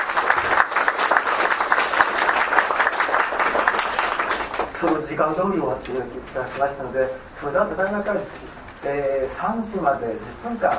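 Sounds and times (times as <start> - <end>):
audience applause: 0.0 - 5.1
speech: 4.8 - 10.7.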